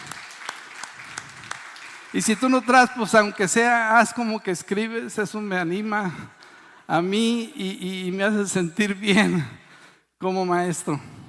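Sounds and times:
audience applause: 0:00.0 - 0:02.9
speech: 0:02.1 - 0:09.6, 0:10.2 - 0:11.2.

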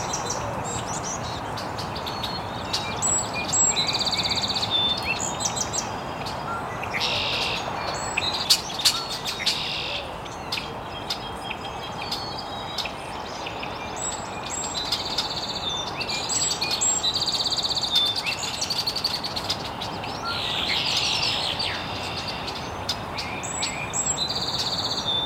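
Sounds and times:
birds chirping: 0:00.0 - 0:25.2.

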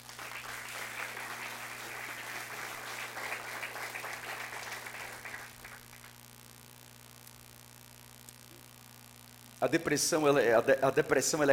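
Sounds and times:
congregation applause in a church worship service: 0:00.0 - 0:06.2
low electrical hum: 0:00.0 - 0:11.5
speech: 0:09.6 - 0:11.5.

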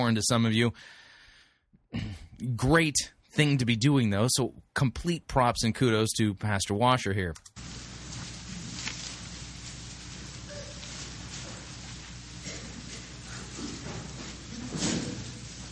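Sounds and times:
speech: 0:00.1 - 0:01.0, 0:01.9 - 0:07.8
Bible pages rustling: 0:07.6 - 0:15.7.

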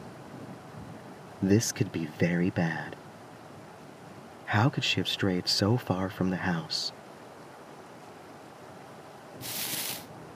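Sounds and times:
speech: 0:01.4 - 0:03.0, 0:04.5 - 0:07.0
soft rustling: 0:09.4 - 0:10.1.

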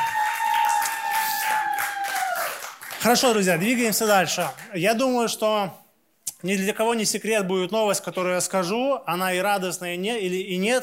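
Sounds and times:
audience applause: 0:00.0 - 0:04.7
speech: 0:03.0 - 0:05.8, 0:06.4 - 0:10.8.

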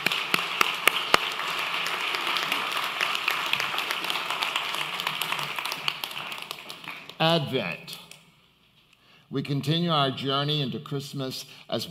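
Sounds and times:
audience applauding: 0:00.0 - 0:07.4
speech: 0:07.2 - 0:08.0, 0:09.3 - 0:11.8.

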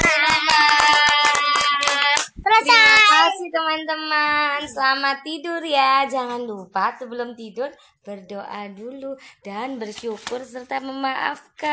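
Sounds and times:
hands clapping: 0:00.0 - 0:03.4
speech: 0:04.8 - 0:11.7.

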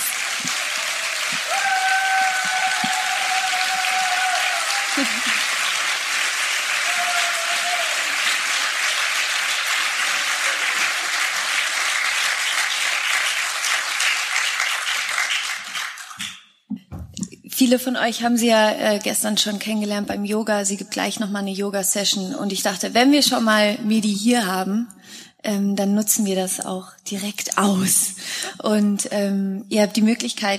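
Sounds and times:
audience applause: 0:00.0 - 0:16.3
speech: 0:17.7 - 0:30.5.

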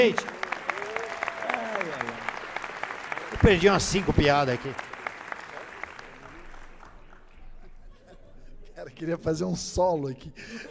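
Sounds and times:
speech: 0:00.0 - 0:00.4, 0:03.4 - 0:04.9, 0:09.0 - 0:10.6
audience applause: 0:00.0 - 0:07.6.

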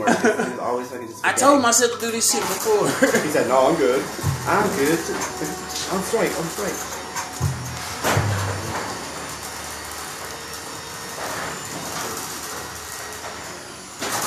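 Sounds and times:
laughter: 0:00.0 - 0:00.9, 0:02.8 - 0:04.7
speech: 0:00.0 - 0:07.0
garage door grinding and rattling: 0:01.8 - 0:14.2
heavy low clunks of garage door: 0:07.4 - 0:08.8.

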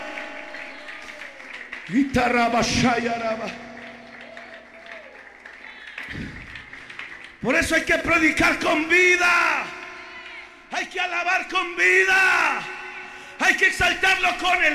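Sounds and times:
audience applause: 0:00.0 - 0:07.9, 0:09.6 - 0:10.5
cheering voices: 0:00.0 - 0:13.6
speech: 0:01.9 - 0:03.7, 0:07.4 - 0:09.7, 0:10.7 - 0:12.8, 0:13.4 - 0:14.7.

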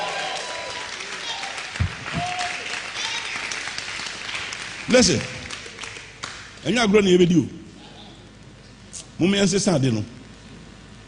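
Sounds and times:
congregation shouting in praise: 0:00.0 - 0:03.2
congregation clapping in praise during a church sermon: 0:00.0 - 0:06.7
speech: 0:04.9 - 0:05.4, 0:06.6 - 0:07.7, 0:09.2 - 0:10.2.

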